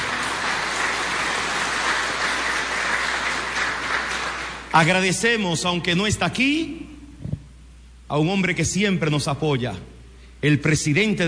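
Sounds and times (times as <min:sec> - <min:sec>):
audience applause: 0:00.0 - 0:04.9
speech: 0:04.7 - 0:06.8, 0:08.1 - 0:11.2.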